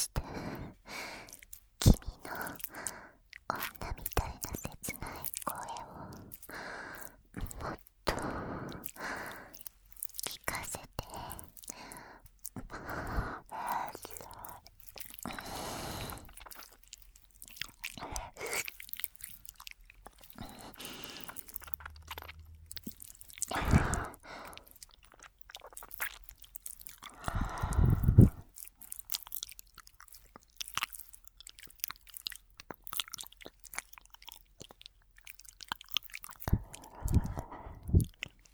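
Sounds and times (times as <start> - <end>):
binaural person whispering: 0.0 - 0.9, 1.8 - 2.9, 3.5 - 9.6, 10.2 - 11.8, 12.6 - 14.7, 17.9 - 18.7, 23.4 - 24.6, 27.3 - 28.5, 36.5 - 38.2
ear licking in the left ear: 0.0 - 38.5
person breathing heavily: 0.2 - 1.4, 2.3 - 3.2, 5.7 - 9.6, 11.7 - 13.9, 15.2 - 16.4, 20.4 - 21.7, 23.5 - 24.7, 27.1 - 28.5, 36.5 - 38.1.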